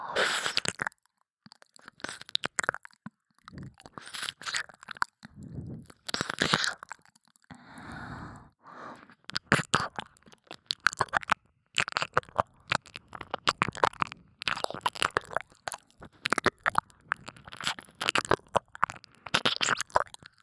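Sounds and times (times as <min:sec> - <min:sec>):
ASMR ear licking in the left channel: 0:00.1 - 0:00.9, 0:01.5 - 0:20.4.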